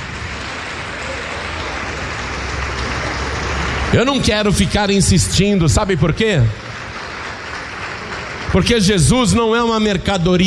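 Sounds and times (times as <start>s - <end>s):
audience applauding: 0.0s - 10.4s
speech: 3.9s - 6.6s, 8.5s - 10.4s.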